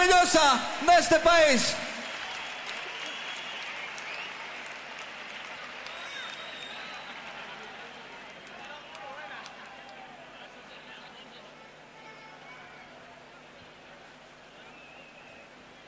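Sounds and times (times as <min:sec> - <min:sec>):
speech: 0:00.1 - 0:01.9
audience applause: 0:01.6 - 0:11.5.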